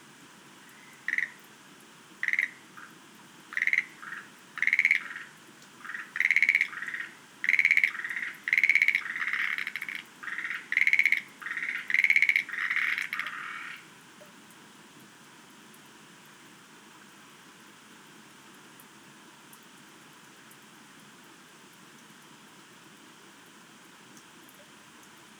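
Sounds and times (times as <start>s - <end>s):
Schlegel's green tree frog calling: 0.6s - 1.5s, 2.2s - 13.8s.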